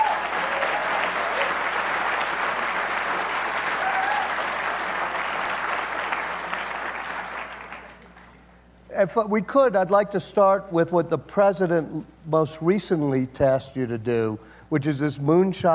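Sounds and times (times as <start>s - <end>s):
audience applause welcoming a speaker at an Aspen event: 0.0s - 8.4s
speech: 9.0s - 15.7s.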